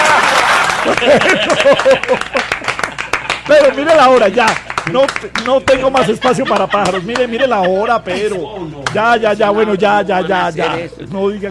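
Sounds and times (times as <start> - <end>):
laughter: 0.0 - 3.9, 5.4 - 11.0
audience applause: 0.0 - 7.0
speech: 1.0 - 2.7, 3.5 - 11.5.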